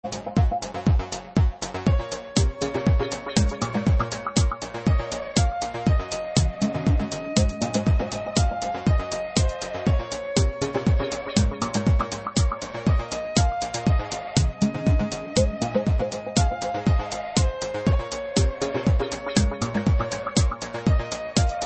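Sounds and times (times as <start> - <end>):
trap synth remix: 0.0 - 21.6.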